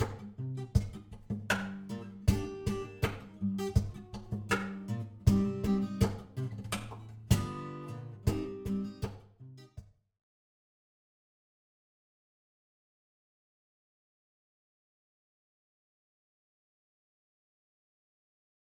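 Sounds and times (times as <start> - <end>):
guitar playing: 0.0 - 9.8.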